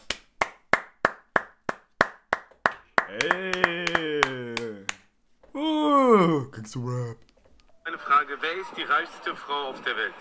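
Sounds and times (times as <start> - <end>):
applause: 0.1 - 5.0
speech: 3.1 - 3.7, 6.2 - 7.3, 8.0 - 10.1.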